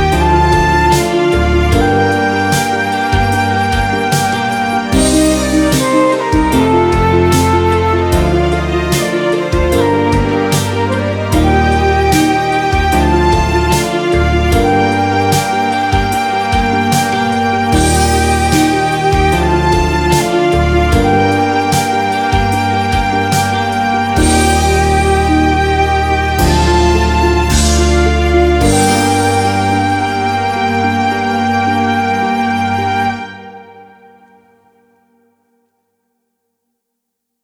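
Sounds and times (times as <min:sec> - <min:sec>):
drums: 0:00.0 - 0:30.3
dramatic guitar: 0:00.0 - 0:33.4.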